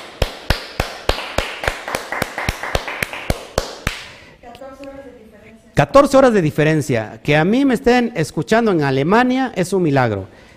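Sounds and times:
applause: 0:00.0 - 0:04.2
speech: 0:05.8 - 0:10.5.

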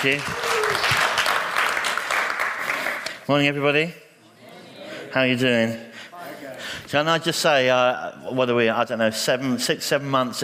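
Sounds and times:
speech: 0:00.0 - 0:01.0, 0:03.3 - 0:04.0, 0:05.2 - 0:05.9, 0:06.9 - 0:10.4
audience applause: 0:00.0 - 0:03.2.

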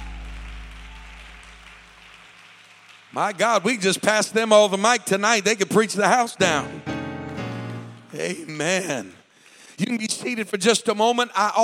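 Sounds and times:
sustained low instrumental chord: 0:00.0 - 0:02.0
audience clapping: 0:00.0 - 0:04.4, 0:07.2 - 0:10.4
speech: 0:03.1 - 0:06.9, 0:08.1 - 0:09.2, 0:09.8 - 0:11.6.

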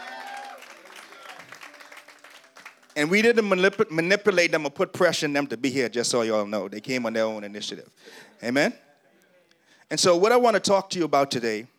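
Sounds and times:
round of applause: 0:00.0 - 0:03.0
speech: 0:03.0 - 0:08.9, 0:09.9 - 0:11.7.

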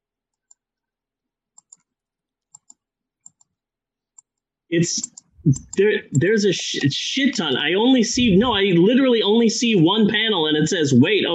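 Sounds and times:
computer mouse clicks: 0:00.3 - 0:00.6, 0:01.6 - 0:03.6, 0:05.0 - 0:05.8
speech: 0:04.7 - 0:11.3.

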